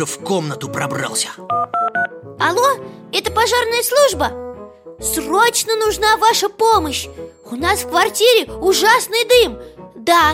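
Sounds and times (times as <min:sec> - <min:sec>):
speech: 0:00.0 - 0:10.3
touch-tone beeps dialing a phone number on a keypad: 0:01.5 - 0:02.2.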